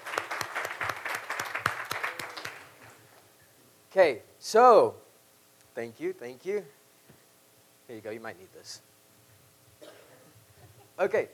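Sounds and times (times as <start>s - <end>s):
audience applause: 0.0s - 3.0s
speech: 3.9s - 5.0s, 5.8s - 6.8s, 7.9s - 8.9s, 11.0s - 11.3s.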